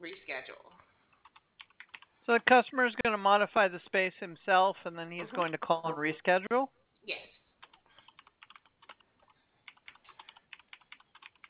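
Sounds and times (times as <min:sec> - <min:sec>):
typing on a computer keyboard: 0:01.2 - 0:02.1, 0:07.6 - 0:11.4
speech: 0:02.3 - 0:07.3.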